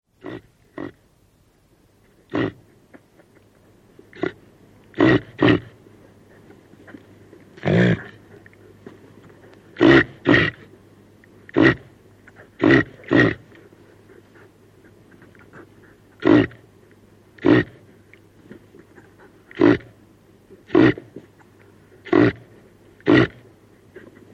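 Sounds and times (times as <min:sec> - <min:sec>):
low steady hum: 0:00.1 - 0:24.3
reindeer grunting: 0:00.2 - 0:01.0, 0:02.3 - 0:02.7, 0:04.1 - 0:05.8, 0:07.6 - 0:08.4, 0:09.7 - 0:10.7, 0:11.5 - 0:13.7, 0:14.9 - 0:16.6, 0:17.4 - 0:17.8, 0:19.0 - 0:20.0, 0:20.7 - 0:21.2, 0:22.0 - 0:24.1.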